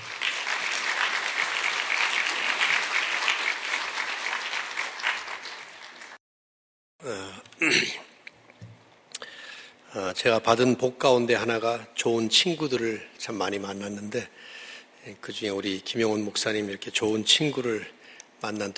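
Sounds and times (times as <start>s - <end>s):
audience applause welcoming a speaker: 0.0s - 6.2s
speech: 7.6s - 8.0s, 10.2s - 18.7s.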